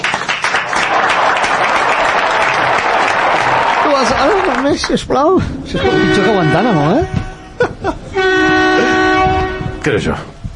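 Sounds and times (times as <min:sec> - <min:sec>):
audience applause: 0:00.0 - 0:05.1
speech: 0:04.0 - 0:07.2, 0:09.8 - 0:10.3
laughter: 0:06.7 - 0:09.1.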